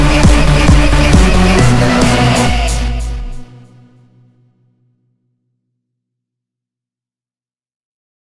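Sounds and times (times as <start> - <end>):
EDM remake played on a Launchpad controller: 0.0 - 4.0.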